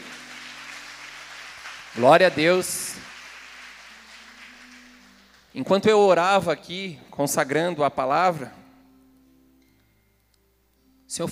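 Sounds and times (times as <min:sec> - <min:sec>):
audience applauding: 0:00.0 - 0:05.8
speech: 0:02.0 - 0:03.1, 0:05.6 - 0:08.6.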